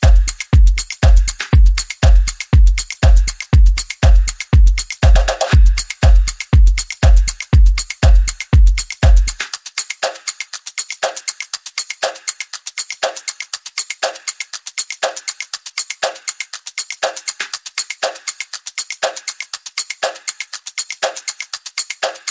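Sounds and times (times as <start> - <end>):
lo-fi music mix: 0.0 - 9.4.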